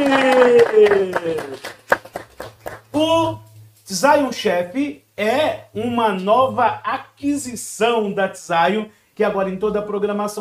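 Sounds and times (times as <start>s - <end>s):
speech: 0.0s - 1.8s, 3.0s - 10.4s
audience applause and clapping: 0.0s - 2.9s.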